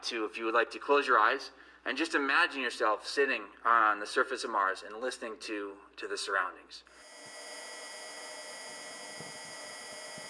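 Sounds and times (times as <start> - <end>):
speech: 0.0 - 7.0
hum of Mars rover: 6.9 - 10.2.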